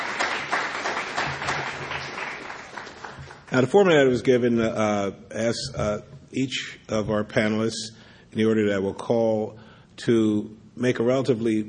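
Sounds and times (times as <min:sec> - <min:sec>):
audience applause: 0:00.0 - 0:03.6
speech: 0:03.5 - 0:11.6.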